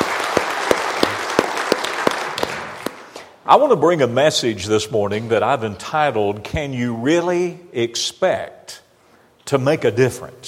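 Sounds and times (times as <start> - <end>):
audience hand clapping: 0.0 - 3.1
speech: 3.5 - 8.8, 9.5 - 10.4.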